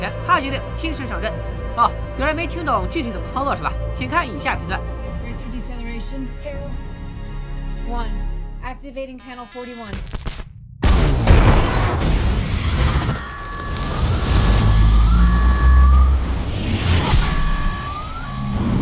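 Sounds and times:
speech: 0:00.0 - 0:06.9, 0:07.9 - 0:10.2
loud explosion: 0:10.8 - 0:18.8
roaring rumble: 0:11.4 - 0:18.8
high-pitched electronic alarm tones: 0:12.7 - 0:18.8.

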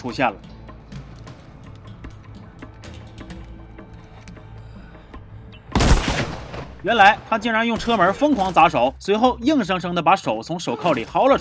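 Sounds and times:
speech: 0:00.0 - 0:00.5, 0:06.8 - 0:11.3
heavy gunfire in shootout: 0:05.7 - 0:08.0.

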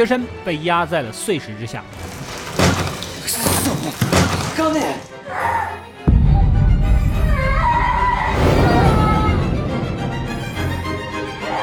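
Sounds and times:
speech: 0:00.0 - 0:05.9
loud explosion: 0:06.1 - 0:11.4
heavy sustained low rumble: 0:06.1 - 0:11.5.

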